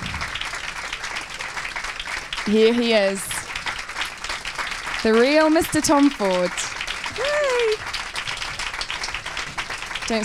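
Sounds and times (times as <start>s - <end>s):
audience applause welcoming a guest to the stage: 0.0s - 10.2s
speech: 2.4s - 3.3s, 5.0s - 7.9s, 10.1s - 10.2s.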